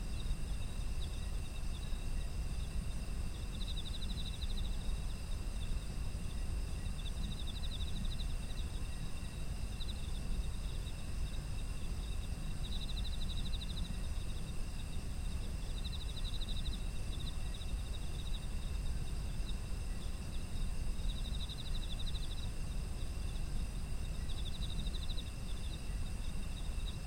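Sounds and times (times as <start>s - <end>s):
high insect trills: 0.0s - 27.0s.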